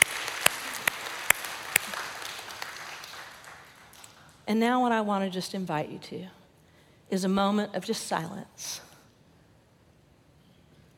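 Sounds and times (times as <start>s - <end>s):
audience applause: 0.0s - 4.2s
speech: 4.5s - 6.4s, 7.1s - 8.9s.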